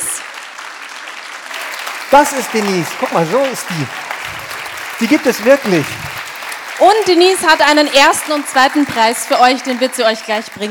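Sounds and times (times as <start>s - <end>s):
audience applause: 0.0s - 10.6s
speech: 2.1s - 4.0s, 5.0s - 6.2s, 6.8s - 10.6s.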